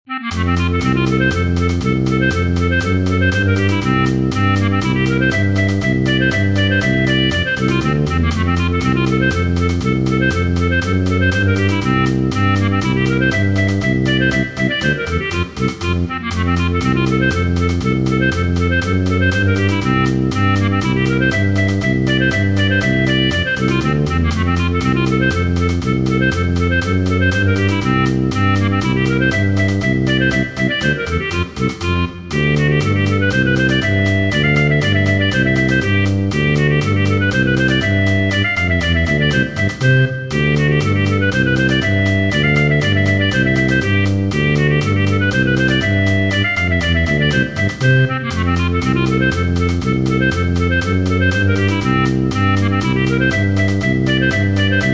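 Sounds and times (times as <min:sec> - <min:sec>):
polka music: 0:00.1 - 0:54.9.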